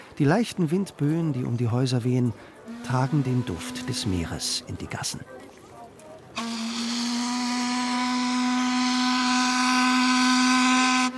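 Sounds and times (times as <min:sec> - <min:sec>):
speech: 0:00.2 - 0:05.4
old steamship steam whistle blast: 0:02.7 - 0:04.4, 0:06.4 - 0:11.1.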